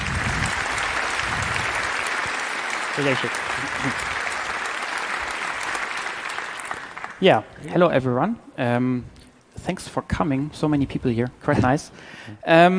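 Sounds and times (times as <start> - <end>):
audience applause: 0.0 - 7.3
speech: 3.0 - 4.2, 7.2 - 12.7.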